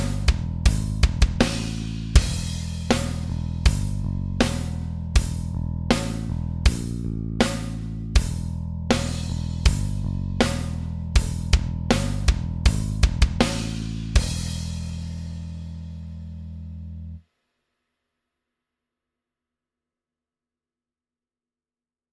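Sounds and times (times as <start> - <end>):
metal riff backing track loop: 0.0 - 15.9.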